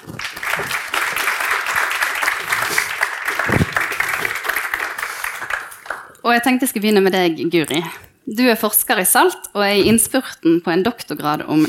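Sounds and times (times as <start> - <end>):
audience applause: 0.0 - 6.2
speech: 6.3 - 11.6.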